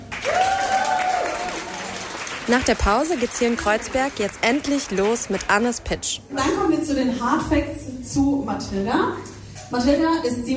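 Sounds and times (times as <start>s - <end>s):
audience applause: 0.0s - 6.0s
speech: 2.5s - 10.5s.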